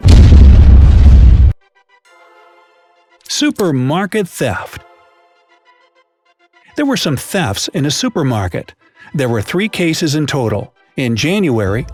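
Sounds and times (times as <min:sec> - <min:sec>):
plane crash explosion: 0:00.0 - 0:01.6
speech: 0:03.3 - 0:04.9, 0:06.8 - 0:11.9.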